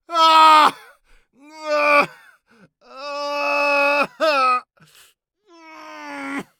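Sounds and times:
person crying out in agony: 0:00.1 - 0:00.8, 0:01.5 - 0:02.2, 0:03.0 - 0:04.6.

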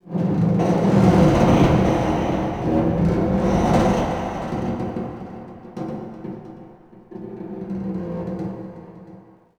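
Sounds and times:
harbor ambience: 0:00.6 - 0:07.1.

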